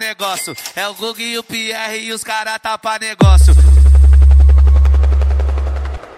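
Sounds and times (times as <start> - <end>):
speech: 0.4 - 4.1
helicopter rotor chop over heavy low rumble: 4.8 - 6.1.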